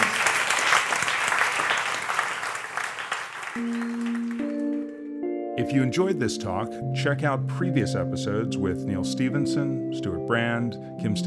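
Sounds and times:
audience round of applause: 0.0s - 4.9s
speech: 3.6s - 4.2s, 5.6s - 11.2s.

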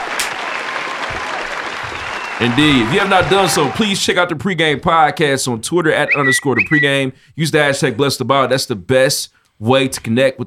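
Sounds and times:
round of applause: 0.0s - 4.0s
speech: 2.4s - 10.4s.

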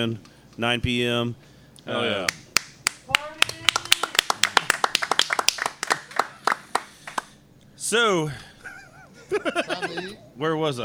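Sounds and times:
speech: 0.0s - 2.4s, 7.9s - 8.5s, 9.3s - 10.8s
hand clapping: 2.2s - 7.4s
laughter: 8.6s - 10.2s.

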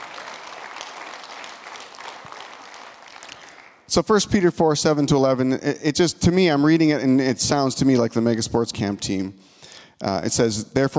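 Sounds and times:
audience applause: 0.0s - 3.9s
speech: 3.9s - 10.9s.

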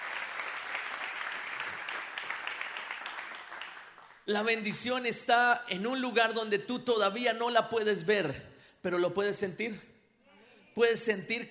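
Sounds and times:
audience applause: 0.0s - 4.3s
speech: 4.3s - 9.9s, 10.8s - 11.5s.

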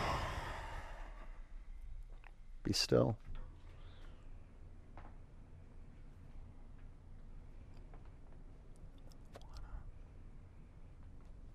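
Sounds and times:
person exhaling through an open mouth during a guided meditation: 0.0s - 1.5s
speech: 2.7s - 3.3s.

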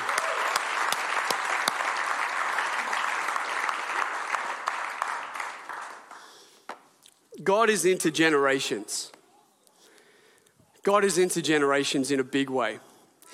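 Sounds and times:
crowd applause: 0.0s - 6.4s
speech: 7.4s - 9.2s, 10.8s - 13.3s.

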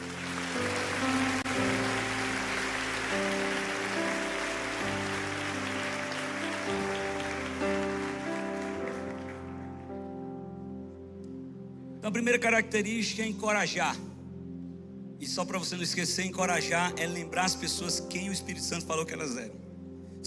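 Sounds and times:
audience applause: 0.0s - 9.9s
speech: 12.1s - 14.1s, 15.2s - 19.6s.

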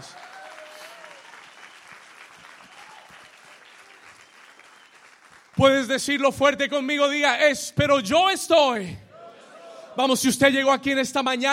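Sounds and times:
audience applause: 0.0s - 5.8s
speech: 5.6s - 9.0s, 10.0s - 11.5s.

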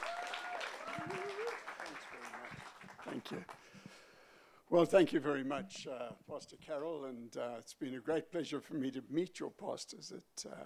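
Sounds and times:
audience applause: 0.0s - 3.6s
speech: 3.1s - 3.6s, 4.7s - 10.6s.

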